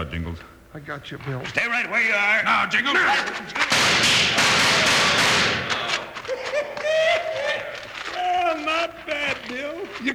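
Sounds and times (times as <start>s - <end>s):
speech: 0.0s - 5.6s, 8.7s - 10.1s
gunshots in a Western gunfight dramatization: 3.6s - 6.0s
laughter: 5.8s - 10.1s.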